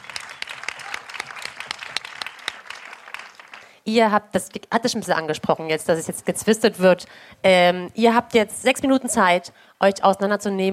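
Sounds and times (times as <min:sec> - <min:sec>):
audience applause: 0:00.0 - 0:03.8
speech: 0:03.9 - 0:10.7.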